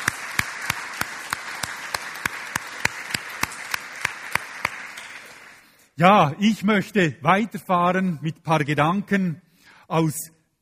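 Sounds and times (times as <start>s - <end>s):
audience applause: 0.0s - 5.7s
speech: 6.0s - 10.4s.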